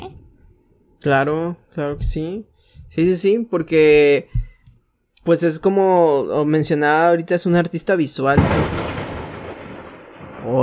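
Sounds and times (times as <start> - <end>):
speech: 1.0 - 4.4, 5.2 - 9.0
thunder: 8.4 - 10.6.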